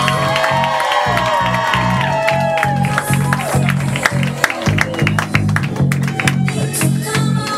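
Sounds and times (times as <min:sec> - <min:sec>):
audience clapping and cheering: 0:00.0 - 0:07.5.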